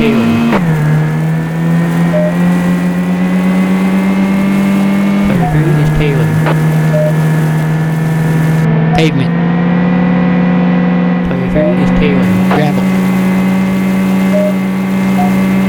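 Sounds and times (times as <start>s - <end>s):
car engine droning in a racing video game: 0.0s - 15.6s.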